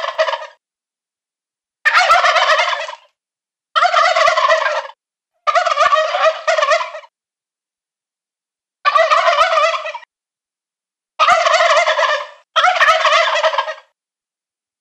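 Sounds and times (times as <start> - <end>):
male turkeys gobbling: 0.0 - 0.6, 1.9 - 3.1, 3.8 - 7.1, 8.9 - 10.1, 11.2 - 13.9.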